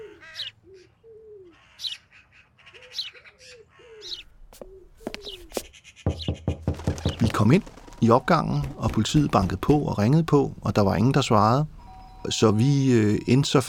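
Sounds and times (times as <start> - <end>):
wood pigeon cooing: 0.0 - 1.8, 2.7 - 5.7
crow and magpie calls: 0.0 - 8.0
sparrows chirping: 0.0 - 9.2
speech: 7.4 - 13.6.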